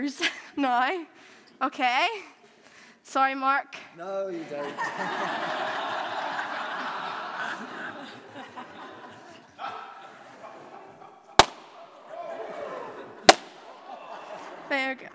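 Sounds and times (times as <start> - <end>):
speech: 0.0 - 2.4, 3.1 - 6.0, 14.7 - 15.1
laughter: 4.4 - 15.1
balloons popping: 11.4 - 12.0, 13.3 - 13.8.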